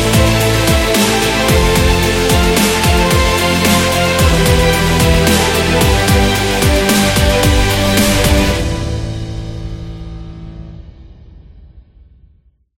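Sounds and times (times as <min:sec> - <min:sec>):
epic dubstep trailer music: 0:00.0 - 0:09.7.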